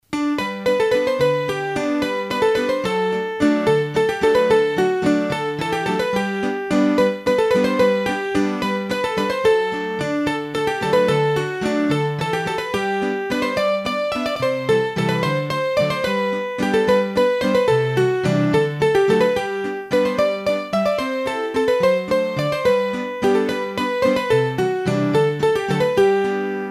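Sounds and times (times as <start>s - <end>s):
hurdy-gurdy playing a mazurka: 0.2s - 26.6s.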